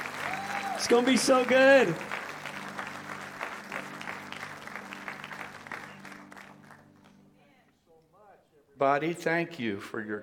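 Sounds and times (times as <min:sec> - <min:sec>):
audience applause: 0:00.0 - 0:07.1
speech: 0:00.8 - 0:02.2, 0:08.8 - 0:10.2.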